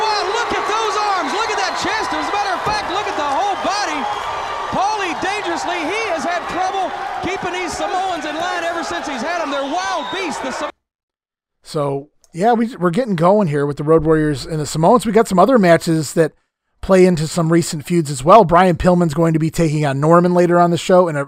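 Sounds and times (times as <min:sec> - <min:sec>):
wrestling arena crowd cheering loudly: 0:00.0 - 0:10.8
speech: 0:07.4 - 0:10.7, 0:11.7 - 0:21.2.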